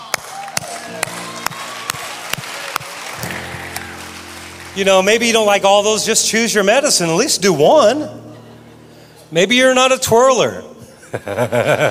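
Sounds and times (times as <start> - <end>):
audience clapping in a steady rhythm: 0.0 - 6.1
crowd noise: 0.0 - 9.9
low tones: 0.9 - 11.1
speech: 4.8 - 8.2, 9.3 - 11.8
laughter: 8.2 - 9.1, 10.8 - 11.8.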